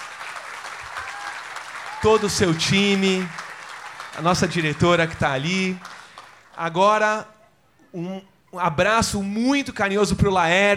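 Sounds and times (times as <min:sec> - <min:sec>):
audience applause: 0:00.0 - 0:06.6
speech: 0:02.0 - 0:03.4, 0:04.2 - 0:05.9, 0:06.6 - 0:07.3, 0:07.9 - 0:10.7.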